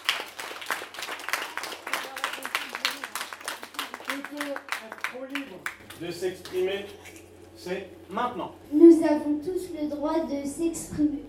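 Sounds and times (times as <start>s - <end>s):
crowd applause: 0.0s - 6.6s
speech: 4.4s - 11.2s.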